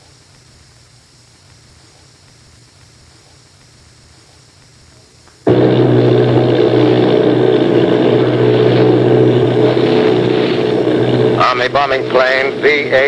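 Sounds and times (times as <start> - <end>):
bomber aircraft engines droning in a 1938 radio drama: 5.4 - 13.0
man speaking: 11.4 - 13.0.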